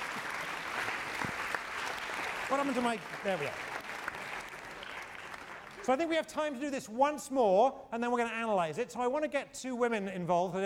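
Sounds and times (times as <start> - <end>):
class applause for players: 0.0 - 5.9
speech: 2.5 - 3.7, 5.8 - 10.6.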